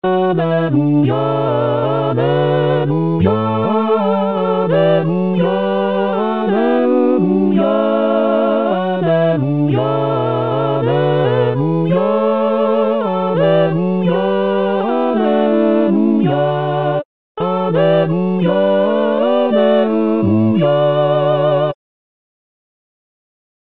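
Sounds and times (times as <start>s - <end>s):
choir singing a chorale: 0.0s - 21.8s.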